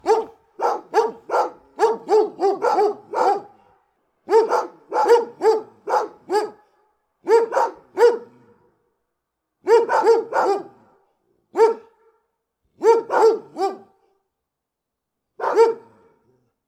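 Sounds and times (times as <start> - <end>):
big dogs barking deeply: 0.0 - 3.6, 4.3 - 6.6, 7.3 - 8.4, 9.7 - 10.8, 11.6 - 11.9, 12.8 - 13.8, 15.4 - 15.9.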